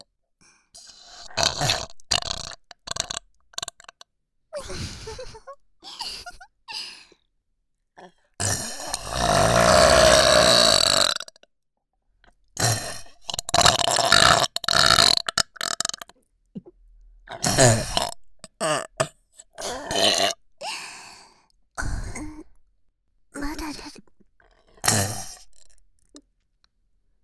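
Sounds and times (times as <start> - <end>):
burping compilation: 1.2 - 4.0, 8.4 - 11.4, 12.6 - 16.2, 17.3 - 20.4, 24.8 - 25.6.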